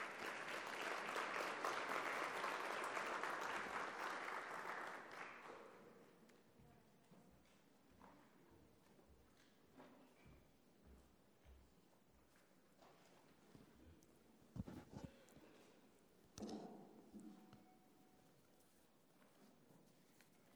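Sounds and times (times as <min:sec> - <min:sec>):
audience applause: 0:00.0 - 0:05.6.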